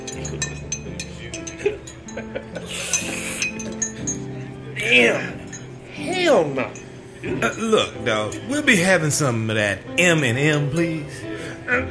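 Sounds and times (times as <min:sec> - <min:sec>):
champagne glasses clinking: 0:00.0 - 0:08.7
speech: 0:04.9 - 0:05.4, 0:06.3 - 0:11.8.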